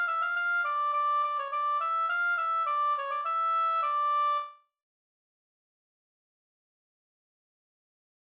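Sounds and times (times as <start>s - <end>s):
slangpolska folk dance tune: 0.0s - 4.5s.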